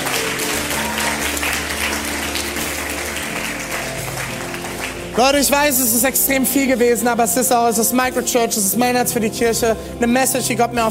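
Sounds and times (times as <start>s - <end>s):
thunderous audience applause: 0.0s - 5.4s
speech: 5.2s - 10.8s.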